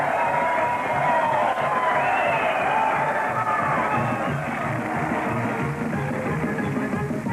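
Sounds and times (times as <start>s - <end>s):
large crowd roaring and cheering: 0.0s - 7.2s.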